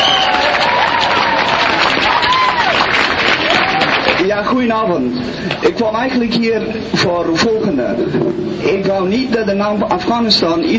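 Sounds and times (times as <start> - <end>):
faint voices and cheers: 0.0 - 4.2
large audience applause: 0.0 - 4.3
speech: 4.5 - 10.7.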